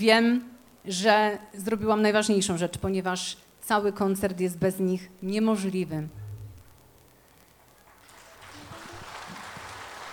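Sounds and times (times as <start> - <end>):
speech: 0.0 - 6.2
audience applause for the musicians: 7.8 - 10.1.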